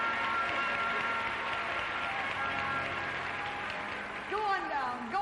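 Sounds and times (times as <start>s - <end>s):
audience applause: 0.0s - 5.1s.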